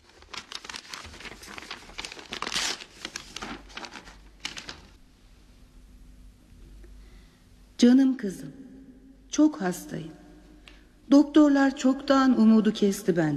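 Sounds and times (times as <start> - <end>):
envelope paper crinkling as it is handed over and opened: 0.0 - 5.0
speech: 7.8 - 8.6, 9.4 - 10.2, 11.1 - 13.3.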